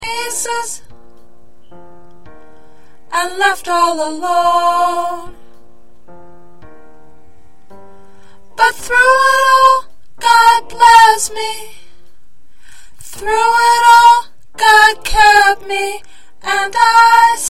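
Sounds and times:
soprano singing: 0.0s - 0.9s, 3.1s - 5.6s, 8.4s - 11.9s, 13.0s - 17.4s.

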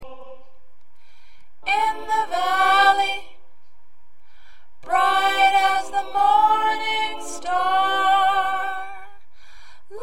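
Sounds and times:
soprano singing: 1.6s - 3.4s, 4.8s - 9.3s, 9.9s - 10.0s.

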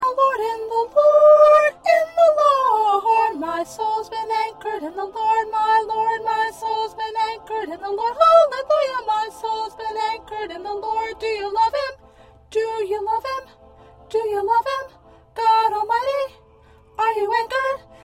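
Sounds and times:
first soprano singing: 0.0s - 18.0s.

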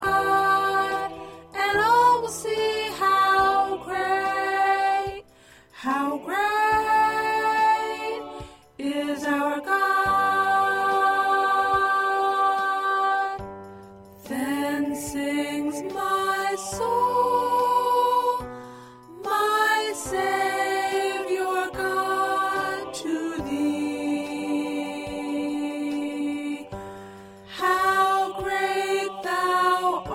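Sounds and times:
soprano singing choir parts: 0.0s - 13.5s, 14.2s - 18.5s, 19.1s - 26.8s, 27.4s - 30.1s.

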